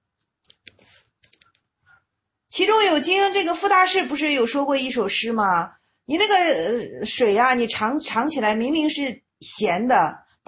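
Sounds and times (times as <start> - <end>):
soft typing on a keyboard: 0.5 - 1.6
speech: 2.6 - 10.4.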